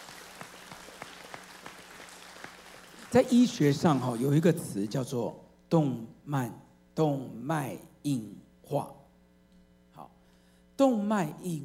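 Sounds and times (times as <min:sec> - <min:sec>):
audience clapping hands: 0:00.0 - 0:05.0
speech: 0:03.1 - 0:09.0, 0:10.8 - 0:11.6.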